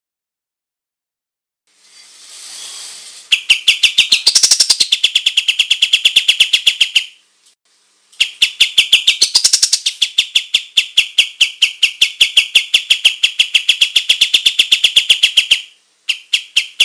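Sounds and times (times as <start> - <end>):
olive-winged bulbul song of very rapid high chirps: 3.3 - 7.2, 8.2 - 16.8.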